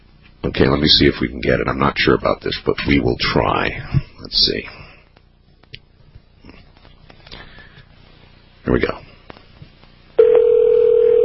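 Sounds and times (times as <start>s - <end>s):
speech: 0.4s - 4.8s, 8.7s - 9.0s
steady single-pitched telephone line tone: 10.2s - 11.2s.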